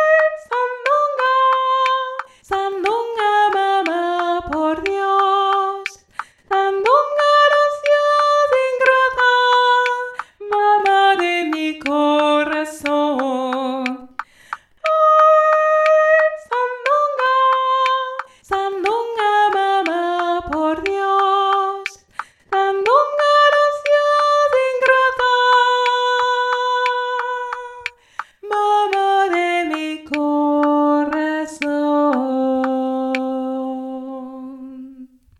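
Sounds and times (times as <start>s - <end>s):
soprano voice singing traditional Mexican air from Tehuantepec: 0.0s - 14.2s, 14.8s - 35.2s
click: 0.1s - 33.3s.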